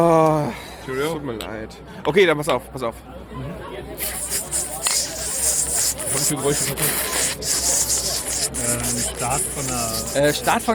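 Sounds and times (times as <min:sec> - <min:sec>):
speech: 0:00.0 - 0:04.6, 0:06.1 - 0:07.7, 0:08.6 - 0:10.7
voice imitating bacon frying in a pan: 0:04.0 - 0:10.7.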